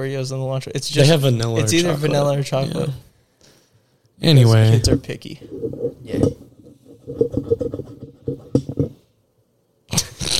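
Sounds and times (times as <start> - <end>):
speech: 0.0 - 3.1, 4.2 - 6.4
low uneven tapping and clattering: 4.8 - 9.0.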